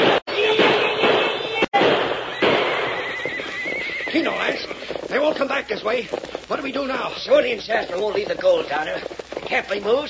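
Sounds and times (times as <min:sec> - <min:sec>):
gunshots fired into the air: 0:00.0 - 0:05.5
speech: 0:05.3 - 0:10.0.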